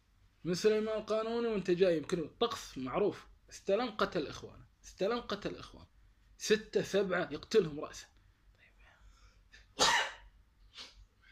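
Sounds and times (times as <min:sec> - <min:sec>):
speech: 0:00.4 - 0:08.1
sneeze: 0:09.8 - 0:11.0.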